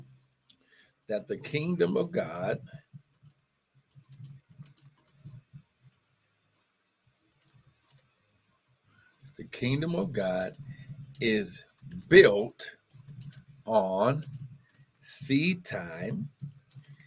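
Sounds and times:
speech: 1.1s - 2.9s, 9.6s - 12.8s, 13.7s - 14.5s, 15.2s - 16.6s
typing on a keyboard: 1.1s - 6.1s, 7.3s - 8.1s, 9.2s - 17.0s.

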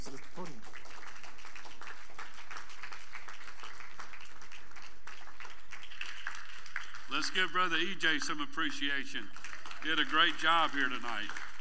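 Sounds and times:
audience applause: 0.0s - 11.6s
speech: 7.2s - 11.5s.

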